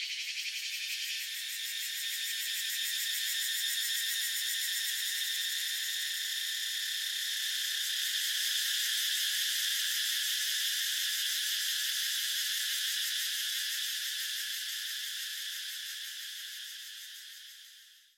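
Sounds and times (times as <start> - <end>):
cicadas buzzing: 0.0 - 17.7
crickets chirping: 0.0 - 18.1.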